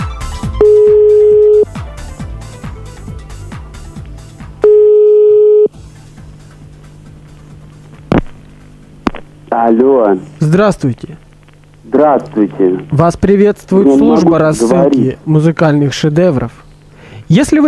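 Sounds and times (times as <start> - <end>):
steady high telephone beep while dialing: 0.6 - 1.7, 4.6 - 5.7
rhythmic telephone clicking pulses: 9.0 - 9.3
speech: 9.6 - 11.3, 11.9 - 16.6, 17.3 - 17.6.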